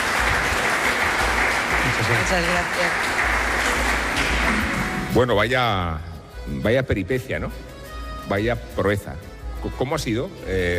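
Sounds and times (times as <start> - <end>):
audience applause: 0.0 - 5.1
speech: 2.0 - 3.1, 5.2 - 7.7, 8.3 - 10.7.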